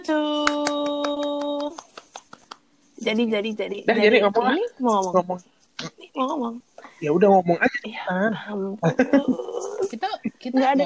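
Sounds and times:
speech: 0:00.0 - 0:00.5, 0:03.0 - 0:05.5, 0:06.2 - 0:10.8
group clapping hands: 0:00.3 - 0:02.6, 0:08.9 - 0:09.4
laughter: 0:08.8 - 0:10.0.

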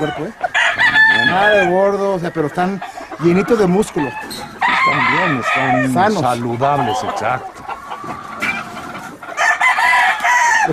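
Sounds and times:
rooster crowing: 0:00.0 - 0:01.8, 0:03.5 - 0:07.4, 0:09.4 - 0:10.7
speech: 0:00.0 - 0:07.5.

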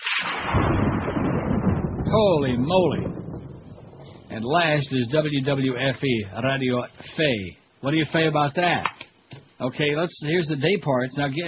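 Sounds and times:
lightning strike thunder crack and rumble: 0:00.0 - 0:06.0
speech: 0:02.1 - 0:03.2, 0:04.4 - 0:09.0, 0:09.6 - 0:11.4.

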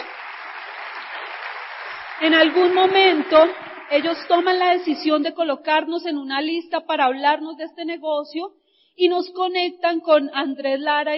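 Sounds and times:
audience applause: 0:00.0 - 0:04.9
speech: 0:02.2 - 0:11.1.

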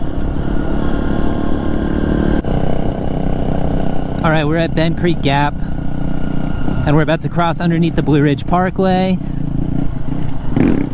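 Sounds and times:
dirt bike engine revving while riding: 0:00.0 - 0:10.9
speech: 0:04.2 - 0:05.8, 0:06.8 - 0:09.4.

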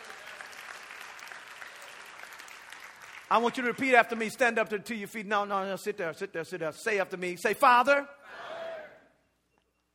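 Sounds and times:
hand clapping: 0:00.0 - 0:03.8
speech: 0:03.3 - 0:08.4.

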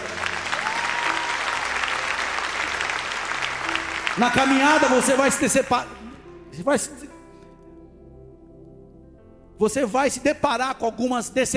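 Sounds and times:
audience applauding: 0:00.0 - 0:05.7
speech: 0:04.2 - 0:07.1, 0:09.6 - 0:11.5.

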